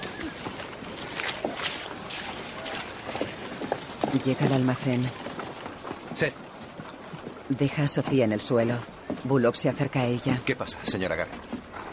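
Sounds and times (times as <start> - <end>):
footsteps of a woman walking through mud: 0.0 - 7.4
speech: 4.1 - 5.2, 6.2 - 6.4, 7.5 - 11.5.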